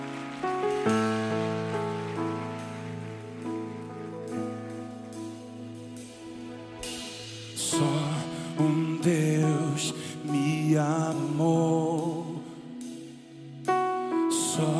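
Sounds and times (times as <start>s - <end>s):
audience applause: 0.0s - 4.9s
sustained keyboard chords: 0.0s - 14.7s.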